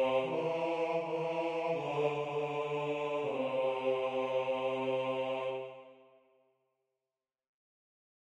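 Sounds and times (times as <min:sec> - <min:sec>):
baritone voice singing: 0:00.0 - 0:05.6.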